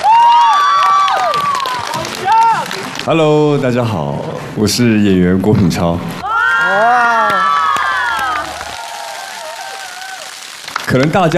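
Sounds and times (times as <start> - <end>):
applause: 0.0 - 3.2, 7.1 - 11.3
speech: 3.1 - 7.2, 10.9 - 11.3.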